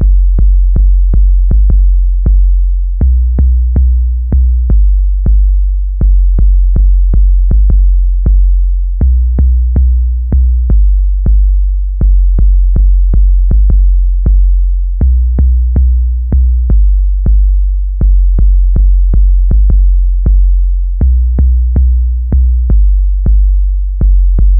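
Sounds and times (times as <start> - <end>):
bass sequence: 0.0 - 24.5.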